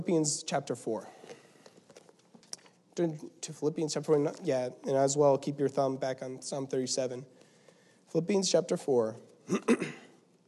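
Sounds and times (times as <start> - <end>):
speech: 0.0 - 1.4, 3.0 - 7.4, 8.1 - 10.1
short rough throat-clearing cough: 9.4 - 10.2.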